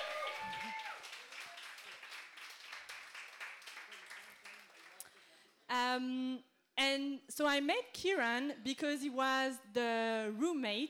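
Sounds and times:
brief cheer: 0.0 - 1.6
audience applause: 0.0 - 5.0
speech: 5.7 - 10.8.

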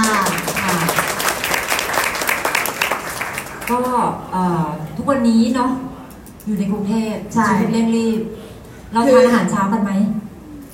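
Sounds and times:
loud audience applause: 0.0 - 3.9
speech: 4.1 - 10.2.

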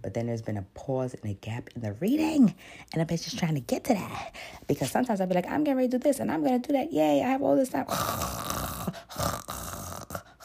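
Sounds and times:
speech: 0.0 - 8.6
voice imitating snoring: 7.8 - 10.4.

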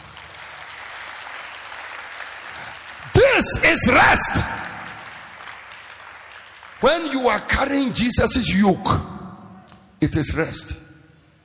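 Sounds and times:
audience clapping: 0.0 - 8.4
speech: 3.4 - 4.7, 6.8 - 9.1, 10.0 - 10.8.

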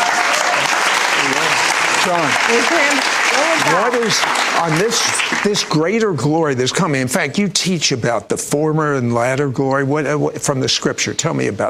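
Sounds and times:
round of applause: 0.0 - 6.0
speech: 2.0 - 11.6.

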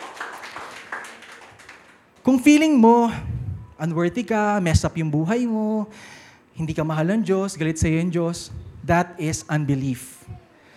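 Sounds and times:
crowd clapping: 0.0 - 2.2
speech: 2.3 - 10.2.

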